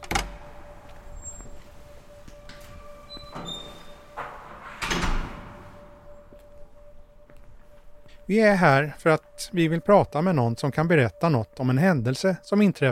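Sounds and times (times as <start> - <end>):
building entrance door opening: 0.0 - 8.0
speech: 8.3 - 12.9.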